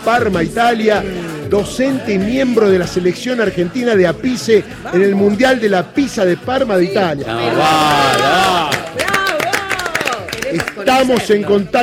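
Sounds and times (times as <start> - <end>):
speech: 0.0 - 9.2, 10.5 - 11.8
applause from people in studio: 7.8 - 11.4.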